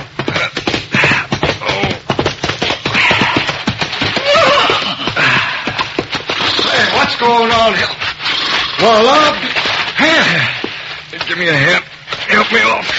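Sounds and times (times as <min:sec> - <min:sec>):
horse galloping along a trail: 0:00.0 - 0:12.9
horse whinnying: 0:02.9 - 0:07.1, 0:08.2 - 0:09.0
speech: 0:07.2 - 0:08.0, 0:08.8 - 0:10.6, 0:11.2 - 0:12.9.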